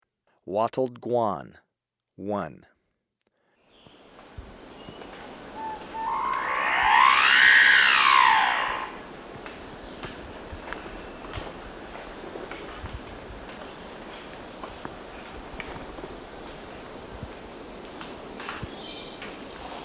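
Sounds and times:
wattled guan whistled calls in Ecuador: 4.7s - 9.9s.

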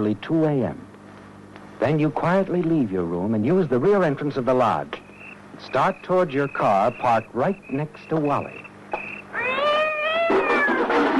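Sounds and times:
speech: 0.0s - 0.8s, 1.8s - 5.0s, 5.6s - 8.7s
cat yowling: 9.3s - 11.1s.

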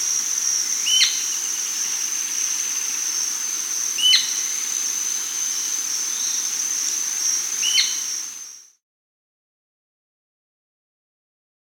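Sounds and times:
Amazonian Royal-Flycatcher Onychorhynchus coronatus vocalizing in Peru: 0.0s - 8.6s.

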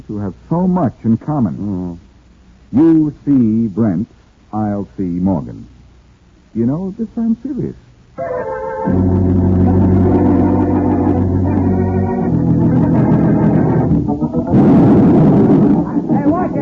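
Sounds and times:
speech: 0.0s - 2.0s, 2.7s - 5.8s, 6.5s - 9.8s
crackling noise: 0.0s - 16.6s
heavy explosive charge blasting at a construction site: 14.5s - 16.6s.

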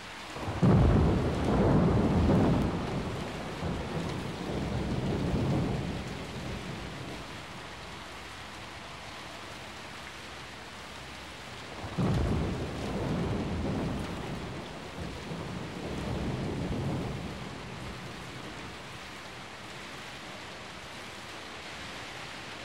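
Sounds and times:
heavy rain: 0.0s - 22.6s
rolling thunder: 0.4s - 7.4s, 11.8s - 18.7s.

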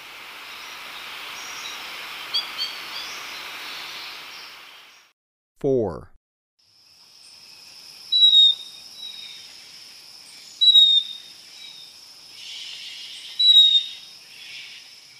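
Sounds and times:
speech: 5.6s - 6.1s
yellow-collared chlorophonia high whistled call: 8.2s - 8.7s, 10.6s - 11.2s.

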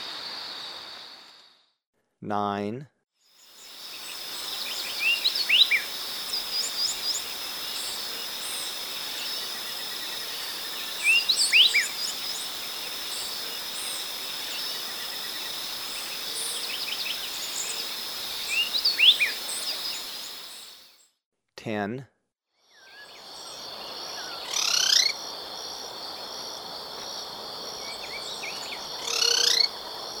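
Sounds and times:
speech: 2.3s - 3.0s, 21.6s - 22.2s
high insect buzz: 3.4s - 21.0s, 22.8s - 30.1s
speckle-breasted wren whistling: 3.6s - 9.4s, 10.2s - 14.8s, 15.9s - 20.7s.

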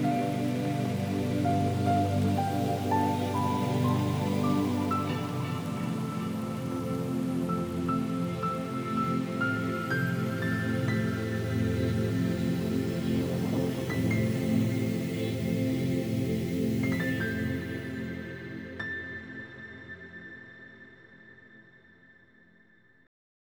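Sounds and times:
natural white noise for meditation: 0.0s - 17.5s.

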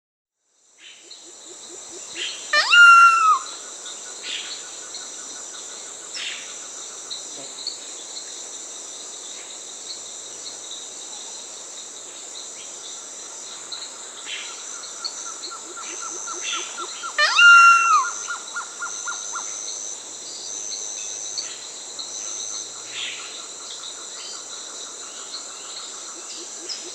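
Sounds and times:
solitary cacique calling: 2.0s - 3.6s, 15.6s - 19.5s.

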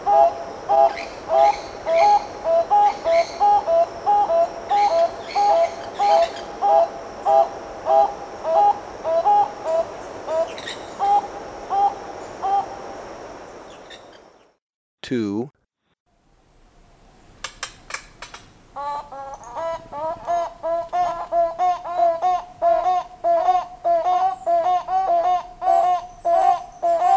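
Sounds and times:
Toucan Barbet calling in Ecuador: 0.1s - 12.6s, 18.8s - 27.1s.

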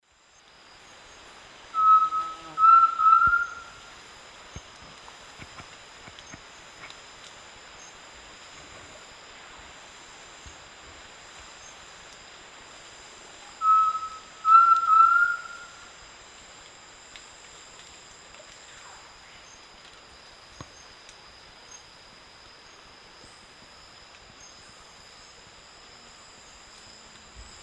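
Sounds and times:
undulated tinamou Crypturellus undulatus whistled song in South America: 1.8s - 3.8s, 13.6s - 15.7s.

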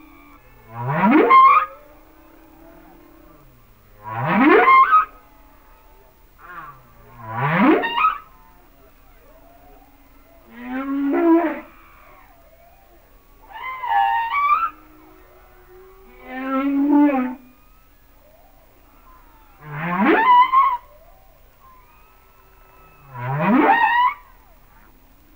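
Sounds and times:
humpback whale song upsweeps, moans and harmonic cries: 0.0s - 25.3s.

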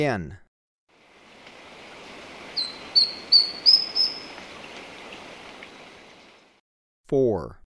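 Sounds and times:
quiet background hiss: 1.0s - 6.5s
Esmeraldas antbird singing clear high whistles: 2.6s - 4.4s.

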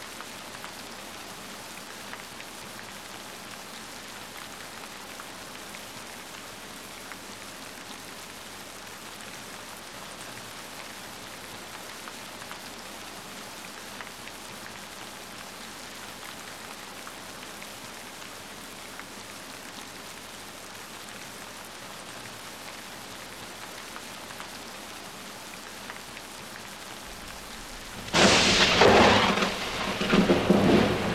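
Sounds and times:
rain: 0.0s - 31.1s
thunder in thunderstorms: 27.1s - 31.1s.

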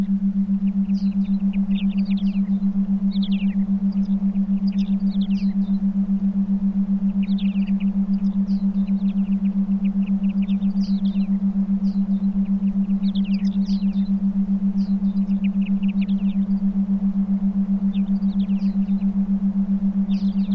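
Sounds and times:
binaural theta meditation beats: 0.0s - 20.5s
forest ambience: 0.0s - 20.5s.

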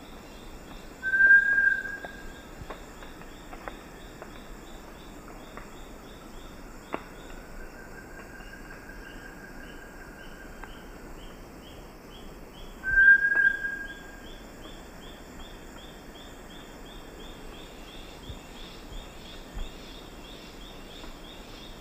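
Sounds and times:
Bartlett's tinamou song in the eastern lowlands of South America: 1.0s - 2.1s, 12.9s - 14.0s.

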